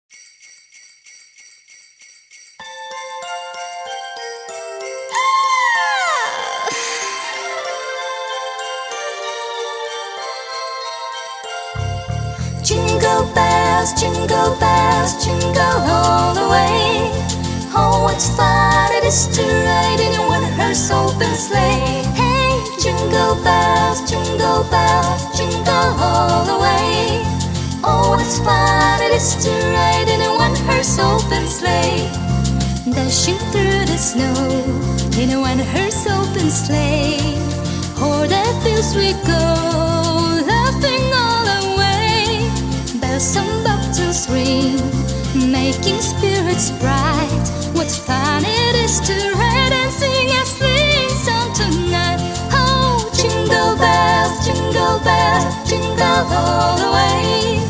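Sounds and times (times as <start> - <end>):
Christmas song in three languages: 0.1 - 57.6.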